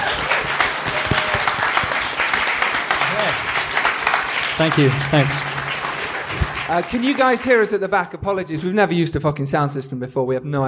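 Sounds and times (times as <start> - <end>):
audience applause: 0.0 - 7.6
speech: 4.6 - 5.5, 6.7 - 10.6.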